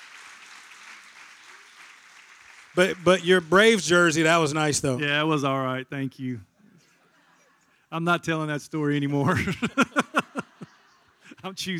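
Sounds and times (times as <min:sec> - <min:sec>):
hand clapping: 0:00.0 - 0:04.3
speech: 0:02.8 - 0:06.5, 0:07.9 - 0:10.0, 0:11.4 - 0:11.7
laughter: 0:06.8 - 0:07.8, 0:09.2 - 0:11.4.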